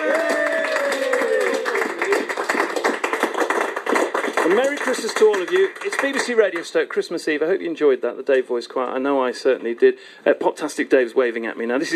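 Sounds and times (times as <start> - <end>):
drawn-out cheer or whoop: 0.0 - 2.2
crowd clapping: 0.0 - 7.0
speech: 4.5 - 11.9.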